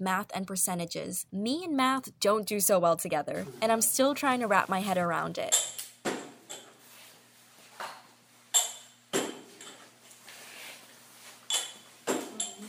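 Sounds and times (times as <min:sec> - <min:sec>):
speech: 0:00.0 - 0:05.8
small ceramic lids lifted and set back onto small teapots: 0:11.5 - 0:12.6.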